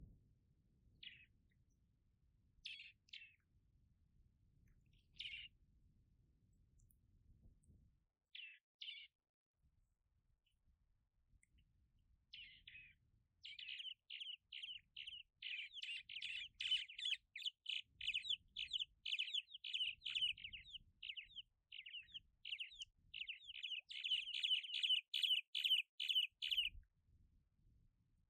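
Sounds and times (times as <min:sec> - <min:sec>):
Cuban martin chirping: 0:01.0 - 0:01.3, 0:02.6 - 0:03.4, 0:04.9 - 0:05.5, 0:08.3 - 0:09.1, 0:12.3 - 0:26.9.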